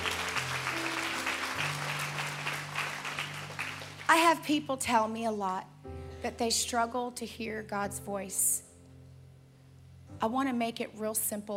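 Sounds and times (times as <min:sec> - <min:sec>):
audience clapping: 0:00.0 - 0:04.3
speech: 0:04.1 - 0:08.6, 0:10.2 - 0:11.5.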